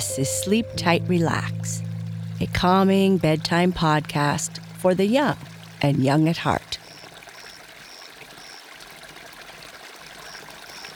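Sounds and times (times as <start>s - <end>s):
speech: 0.0s - 6.8s
soft rippling river water: 0.9s - 10.9s.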